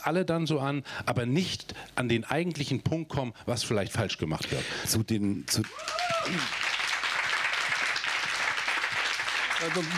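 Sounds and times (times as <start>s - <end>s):
speech: 0.0s - 6.7s, 9.6s - 9.9s
audience clapping: 5.5s - 9.9s.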